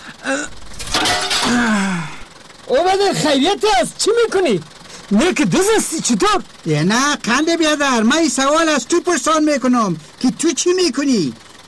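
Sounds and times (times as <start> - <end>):
speech: 0.3 - 0.6, 2.7 - 11.6
door glass smashing: 0.7 - 1.8.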